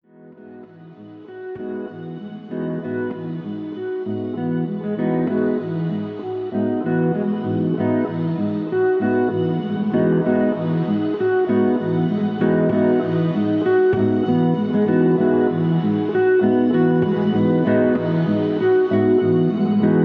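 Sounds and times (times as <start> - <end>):
nylon string melody at 97 BPM: 0.2 - 20.0.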